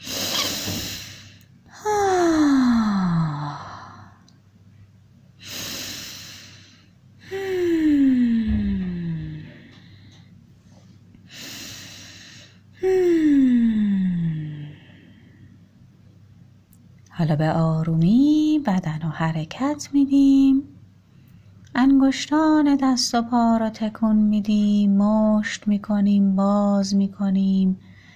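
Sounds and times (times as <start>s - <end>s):
deep breathing in a guided relaxation exercise: 0.0s - 4.3s, 5.4s - 10.4s, 11.3s - 15.6s
speech: 17.2s - 20.6s, 22.1s - 27.8s.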